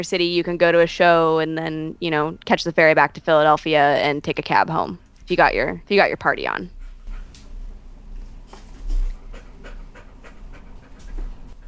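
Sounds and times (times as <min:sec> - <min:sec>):
speech: 0:00.0 - 0:06.8
dog panting: 0:06.7 - 0:11.6.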